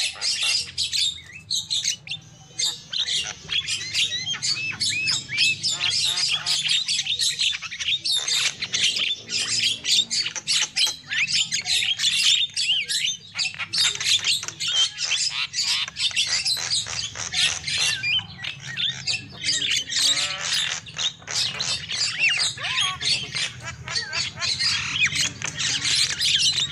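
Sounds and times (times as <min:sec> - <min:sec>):
lovebird squawking and chirping: 0:00.0 - 0:26.7.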